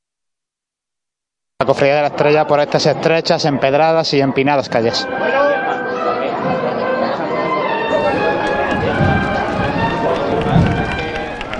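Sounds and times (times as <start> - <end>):
speech: 1.6 - 5.4
crowd chatter at a Holy Week procession: 1.6 - 11.5
shuffling footsteps: 5.2 - 11.5.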